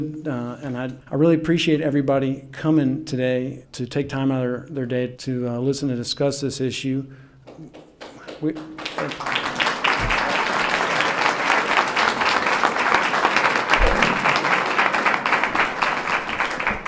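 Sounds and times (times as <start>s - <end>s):
speech: 0.0s - 7.8s, 8.4s - 9.7s
audience applause: 8.3s - 16.8s
low thumps: 13.7s - 14.4s.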